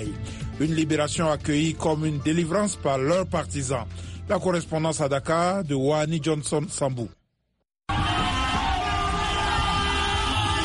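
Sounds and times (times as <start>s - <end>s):
speech: 0.0s - 7.2s
car horns: 7.9s - 10.6s
celebrating crowd cheering: 7.9s - 10.6s.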